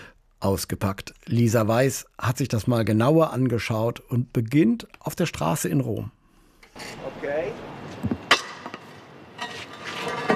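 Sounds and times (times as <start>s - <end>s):
speech: 0.4s - 6.2s
metal manhole cover pushed with a long tool over cobblestones in central Rome: 6.8s - 10.3s
metal manhole cover clanks: 8.2s - 10.3s.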